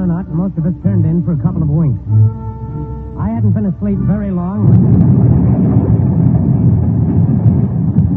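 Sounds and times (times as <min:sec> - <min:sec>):
speech: 0:00.2 - 0:02.5, 0:03.4 - 0:05.5
explosion of a ship hitting a mine: 0:04.6 - 0:08.1.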